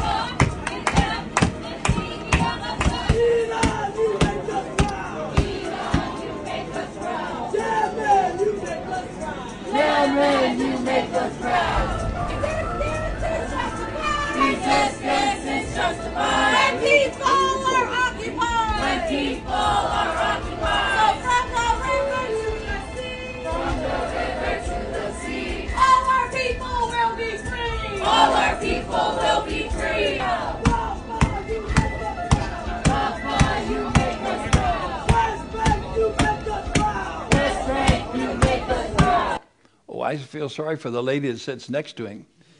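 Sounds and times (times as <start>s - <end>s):
protest crowd chanting in a subway: 0.0s - 26.8s, 27.8s - 39.4s
speech: 40.6s - 42.4s.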